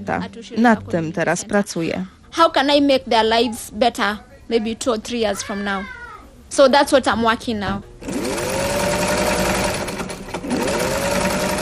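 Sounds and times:
speech: 0.0 - 7.9
sewing machine whirring as girls sew bags and backpacks: 8.0 - 11.6.

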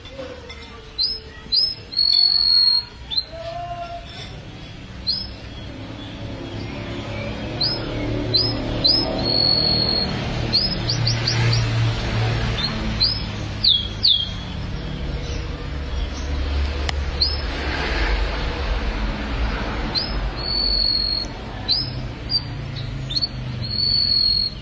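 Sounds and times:
Atlantic canary giving high rising whistles: 1.0 - 3.4, 6.6 - 11.7, 12.6 - 14.5, 17.2 - 17.4, 19.9 - 24.6
loud low rumbling background: 4.3 - 23.9.

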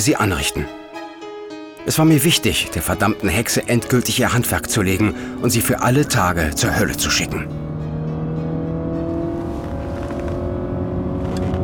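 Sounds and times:
speech: 0.0 - 0.8, 1.8 - 7.6
car engine revving and speeding: 3.6 - 11.6.

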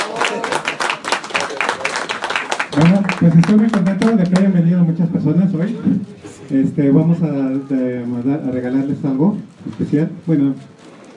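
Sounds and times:
audience clapping at a Star Wars Visionaries event: 0.0 - 4.6
speech: 2.8 - 11.1.

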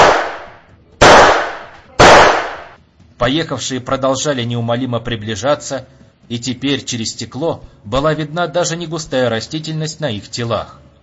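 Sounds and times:
gunshots fired into the dark: 0.0 - 2.8
speech: 3.2 - 10.9.

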